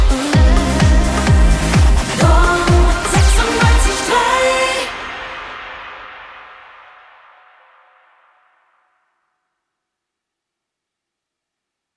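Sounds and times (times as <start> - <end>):
house music main theme: 0.0 - 7.8.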